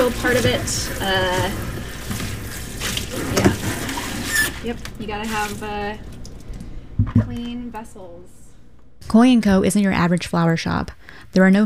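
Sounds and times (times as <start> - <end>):
speech: 0.0 - 2.2, 4.6 - 6.1, 7.2 - 8.4, 9.0 - 11.6
running water splashing while washing flower buckets: 0.0 - 6.3.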